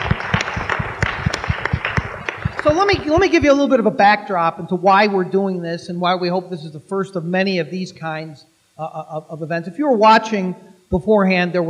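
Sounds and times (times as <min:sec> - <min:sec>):
audience applause: 0:00.0 - 0:03.5
speech: 0:02.6 - 0:11.6.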